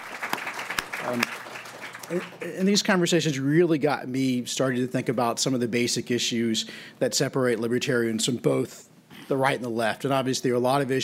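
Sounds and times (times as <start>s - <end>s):
audience applause: 0.0s - 2.7s
speech: 1.0s - 1.5s, 2.1s - 11.0s.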